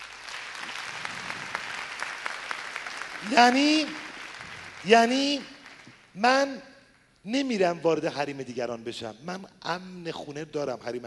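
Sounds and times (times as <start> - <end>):
audience applause at a seminar: 0.0 - 6.0
speech: 3.2 - 4.0, 4.8 - 5.5, 6.2 - 11.0.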